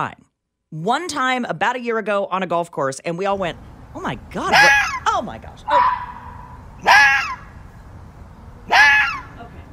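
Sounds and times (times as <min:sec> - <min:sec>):
speech: 0:00.0 - 0:06.0
fox screaming and barking: 0:04.5 - 0:07.6, 0:08.6 - 0:09.4.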